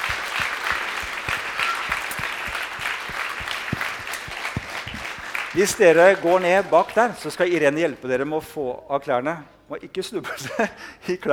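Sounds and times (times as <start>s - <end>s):
audience applause: 0.0s - 7.6s
speech: 5.6s - 11.3s.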